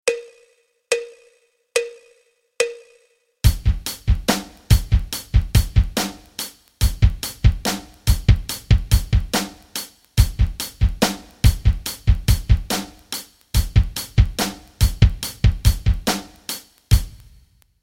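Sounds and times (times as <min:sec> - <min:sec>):
rock rhythms: 0:03.4 - 0:17.4.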